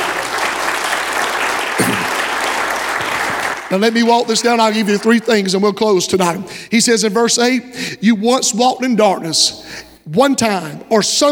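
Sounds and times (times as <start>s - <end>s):
audience hand clapping: 0.0s - 5.6s
speech: 3.7s - 11.2s.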